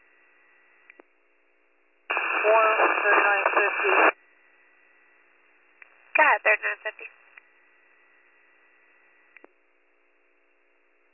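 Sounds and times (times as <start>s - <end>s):
radio static: 2.1s - 4.2s, 6.2s - 7.1s.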